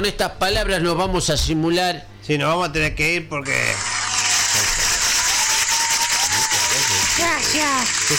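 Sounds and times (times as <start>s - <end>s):
speech: 0.0s - 3.9s, 7.5s - 8.1s
audience applause: 3.8s - 8.1s.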